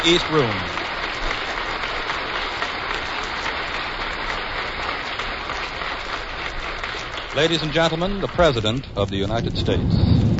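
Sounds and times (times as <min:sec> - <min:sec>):
speech: 0:00.0 - 0:00.8, 0:07.4 - 0:10.3
audience applause for the President entering the East Room: 0:00.0 - 0:09.9.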